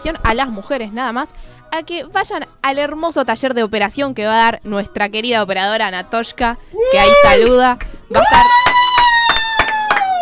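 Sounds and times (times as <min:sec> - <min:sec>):
speech: 0:00.0 - 0:08.7
people cheering: 0:06.8 - 0:07.5, 0:08.1 - 0:10.2
applause: 0:08.2 - 0:10.2.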